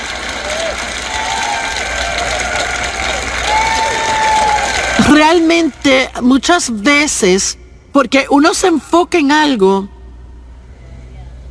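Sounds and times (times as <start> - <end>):
audience applause: 0.0 - 6.3
speech: 5.0 - 9.9.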